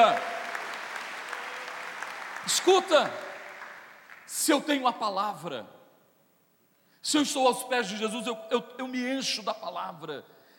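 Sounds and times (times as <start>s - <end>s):
audience clapping: 0.0s - 4.6s
speech: 2.4s - 3.3s, 4.3s - 5.8s, 7.0s - 10.4s.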